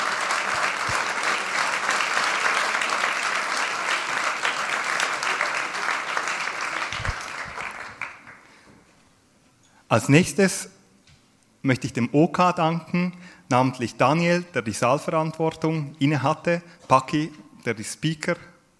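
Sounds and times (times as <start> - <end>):
audience applause: 0.0 - 8.6
speech: 9.9 - 10.8, 11.6 - 18.5.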